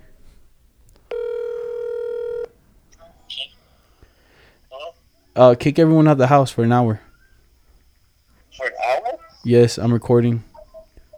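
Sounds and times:
telephone ringback tone on an outgoing call: 0:01.1 - 0:02.6
speech: 0:05.4 - 0:07.0, 0:09.4 - 0:10.5.

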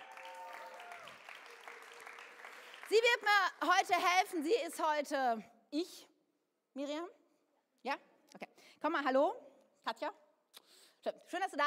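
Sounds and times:
audience applause: 0:00.0 - 0:03.5
speech: 0:02.9 - 0:06.1, 0:06.8 - 0:07.2, 0:07.8 - 0:10.2, 0:11.0 - 0:11.6.

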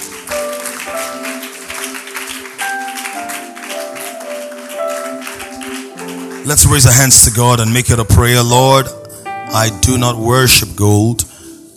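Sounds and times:
audience clapping: 0:00.0 - 0:08.3
sustained keyboard or organ notes: 0:00.0 - 0:11.7
speech: 0:06.5 - 0:11.3.

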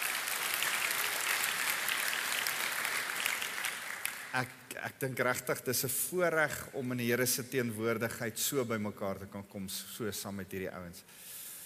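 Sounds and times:
audience clapping hands: 0:00.0 - 0:04.6
speech: 0:04.4 - 0:11.3.

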